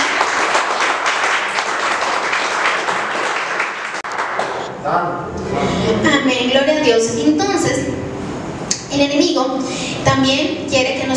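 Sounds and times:
audience applause: 0.0s - 4.7s
speech: 4.9s - 8.1s, 8.9s - 11.1s.

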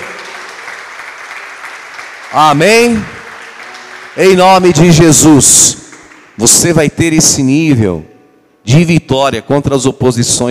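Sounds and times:
crowd applauding: 0.0s - 6.8s
speech: 2.3s - 3.2s, 4.2s - 5.8s, 6.4s - 10.4s.

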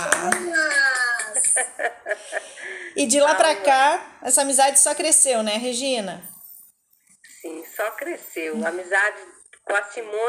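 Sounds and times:
crowd clapping: 0.0s - 1.6s
speech: 1.6s - 6.3s, 7.4s - 10.2s.

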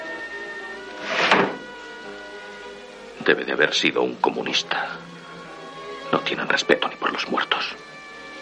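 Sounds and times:
wardrobe door kicked open with a foot: 1.2s - 1.6s
speech: 3.3s - 5.1s, 6.2s - 7.9s.

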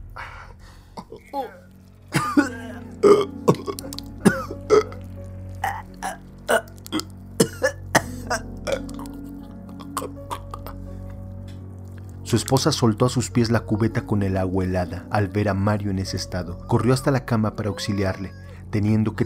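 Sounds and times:
vomiting retching sound effect: 1.0s - 11.2s
speech: 1.1s - 4.0s, 12.3s - 19.2s.

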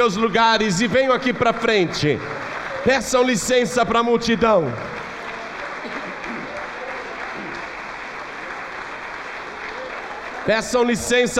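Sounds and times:
speech: 0.0s - 5.0s, 10.4s - 11.3s
audience applauding: 0.0s - 11.3s.

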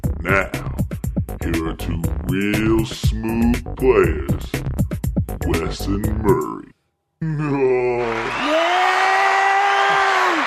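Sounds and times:
speech: 0.2s - 0.6s, 1.5s - 4.7s, 5.5s - 7.7s
crowd cheering and applauding: 7.8s - 10.4s.

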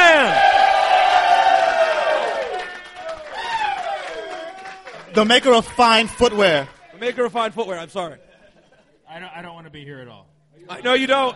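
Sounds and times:
crowd cheering and whooping for a guest: 0.0s - 6.8s
speech: 5.2s - 8.3s, 9.1s - 11.3s
laughter: 8.0s - 9.1s.

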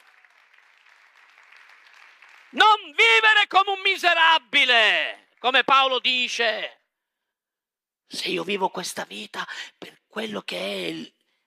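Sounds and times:
audience applause: 0.0s - 3.0s
speech: 2.5s - 6.8s, 8.1s - 11.2s.

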